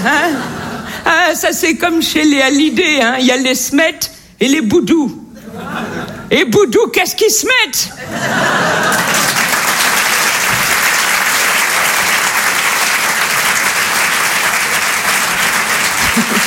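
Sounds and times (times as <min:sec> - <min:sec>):
laughter: 0:00.0 - 0:01.0, 0:05.4 - 0:06.3, 0:07.9 - 0:10.3, 0:15.4 - 0:16.4
speech: 0:00.0 - 0:05.2, 0:05.8 - 0:09.3
loud crowd applause: 0:08.3 - 0:16.4.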